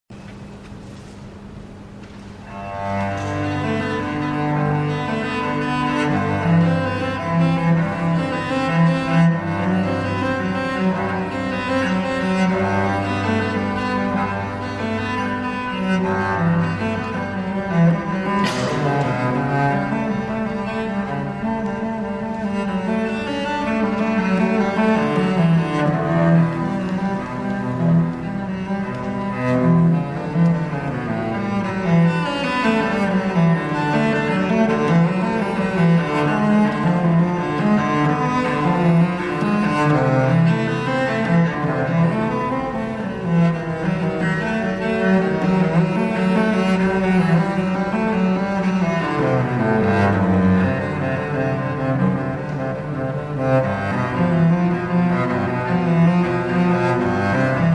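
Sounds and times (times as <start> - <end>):
cello suite prelude: 0.2 - 57.7.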